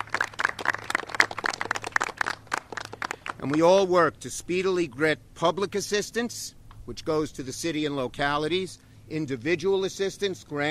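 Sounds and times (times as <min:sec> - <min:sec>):
audience applause: 0:00.0 - 0:03.6
speech: 0:03.4 - 0:10.6.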